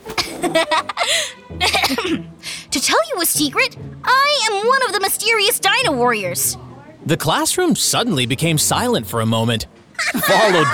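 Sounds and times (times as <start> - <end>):
laughter: 0.1 - 2.0, 10.0 - 10.7
speech: 0.4 - 2.3, 3.2 - 10.7
person coughing in the corner: 1.1 - 2.3.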